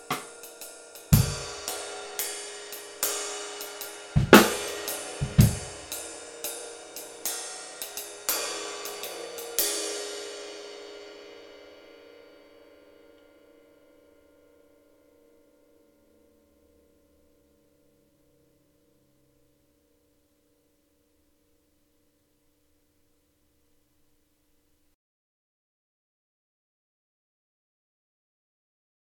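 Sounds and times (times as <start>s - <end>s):
flat ride cymbal: 0.0s - 13.8s.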